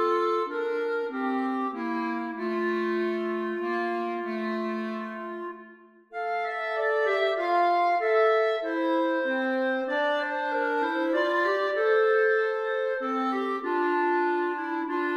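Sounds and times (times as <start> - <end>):
clarinet duet: 0.0 - 15.1.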